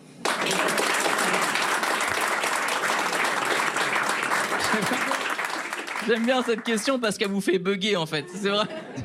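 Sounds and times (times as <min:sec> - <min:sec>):
audience applause: 0:00.2 - 0:07.3
laughter: 0:04.4 - 0:06.2, 0:08.1 - 0:09.0
speech: 0:04.7 - 0:05.2, 0:06.0 - 0:09.0.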